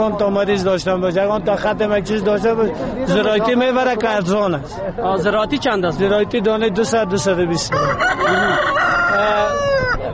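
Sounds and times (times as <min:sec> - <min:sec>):
speech: 0:00.0 - 0:10.0
rooster crowing at a poultry market: 0:07.7 - 0:10.0.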